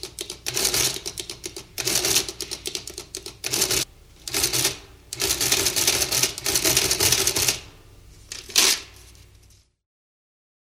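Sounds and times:
manual adding machine: 0:00.0 - 0:07.6.

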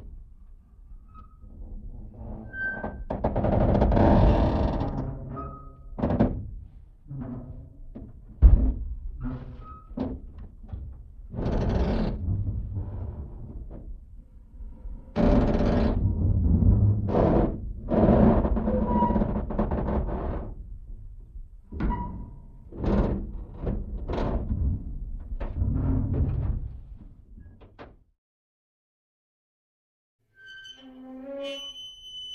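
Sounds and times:
low slowed-down metal creaks and groans: 0:00.4 - 0:27.9, 0:30.4 - 0:32.3.

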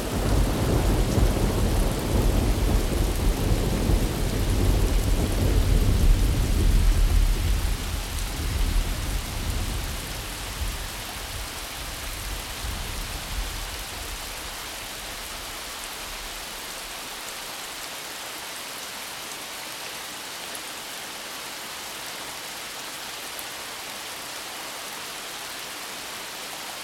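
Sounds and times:
thunderstorm: 0:00.0 - 0:15.6.

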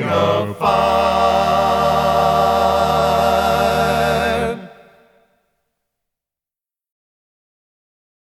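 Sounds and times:
a cappella doo wop singing: 0:00.0 - 0:05.1.

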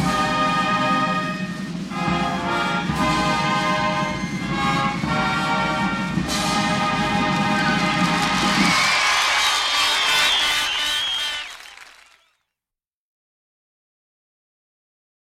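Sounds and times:
national anthem music: 0:00.0 - 0:12.0.

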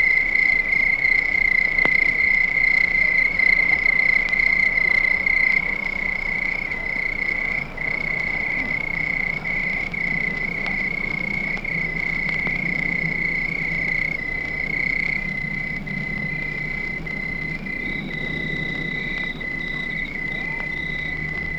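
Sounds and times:
crickets chirping at night: 0:00.0 - 0:21.5.

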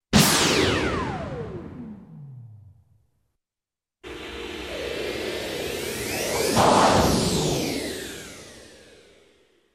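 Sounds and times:
powerful shot: 0:00.2 - 0:01.2, 0:06.5 - 0:08.2.

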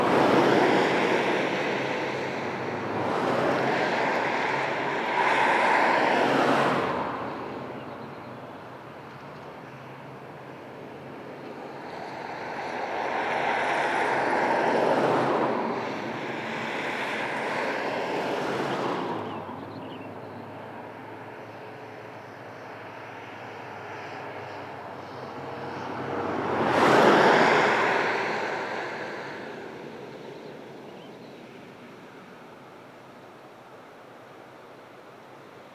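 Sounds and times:
cars passing on a distant highway: 0:00.0 - 0:35.7.

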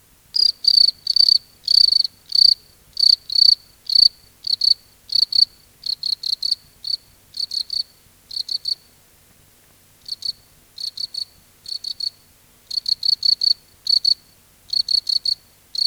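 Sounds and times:
crickets at night in a field: 0:00.3 - 0:08.9, 0:10.1 - 0:15.8.

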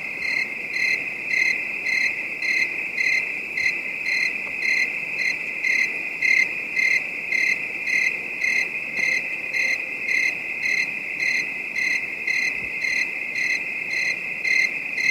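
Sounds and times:
distant bed of high-pitched crickets at night: 0:00.0 - 0:15.0.

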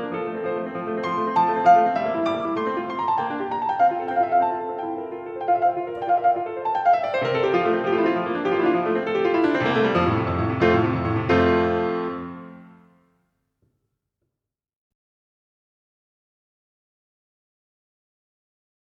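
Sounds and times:
piano sonatina: 0:00.0 - 0:13.1.

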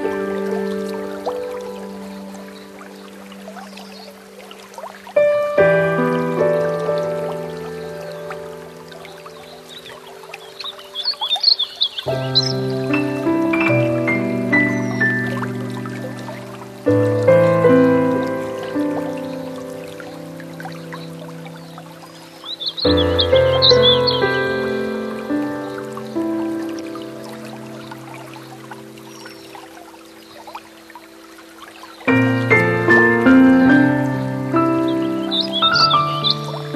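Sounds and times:
Warbling Vireo singing: 0:00.0 - 0:36.7
piano: 0:00.0 - 0:36.7.

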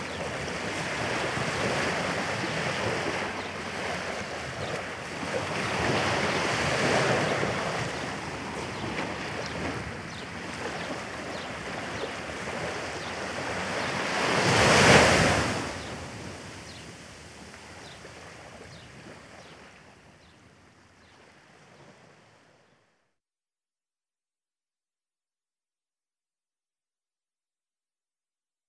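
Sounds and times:
waves breaking along the shore: 0:00.0 - 0:22.7.

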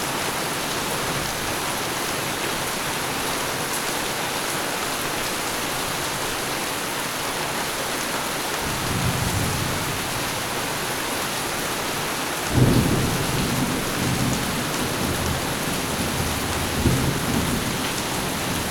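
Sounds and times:
steady downpour: 0:00.0 - 0:18.6
thunder: 0:12.5 - 0:18.6.

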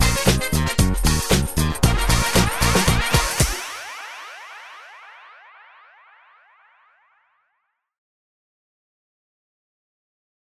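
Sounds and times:
dance music: 0:00.0 - 0:05.1.

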